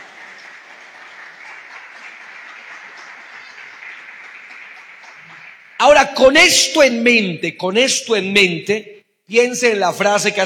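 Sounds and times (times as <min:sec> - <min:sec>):
audience applauding: 0:00.0 - 0:06.0
speech: 0:05.8 - 0:10.4.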